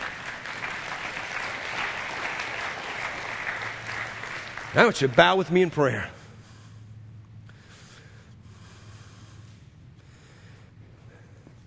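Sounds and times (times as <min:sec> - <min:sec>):
audience clapping: 0:00.0 - 0:06.0
speech: 0:04.7 - 0:06.2.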